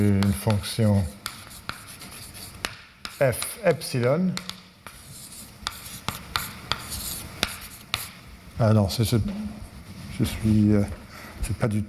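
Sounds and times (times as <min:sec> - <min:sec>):
pen tapping: 0:00.0 - 0:00.6, 0:01.2 - 0:01.9, 0:02.5 - 0:03.6, 0:04.4 - 0:05.0, 0:05.6 - 0:08.2
speech: 0:00.0 - 0:01.2, 0:03.2 - 0:04.6, 0:08.6 - 0:09.6, 0:10.2 - 0:11.8
handwriting scratching during a maths explanation: 0:00.0 - 0:03.6, 0:04.4 - 0:08.2.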